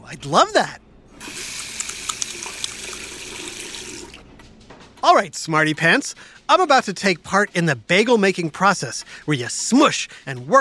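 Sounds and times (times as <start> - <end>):
speech: 0.1 - 1.4, 5.0 - 10.6
hands washed under running tap water: 1.2 - 4.2.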